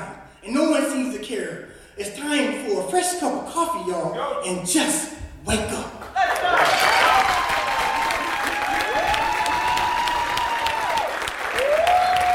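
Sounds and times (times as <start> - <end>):
speech: 1.3 - 6.2
audience applause: 6.2 - 12.3.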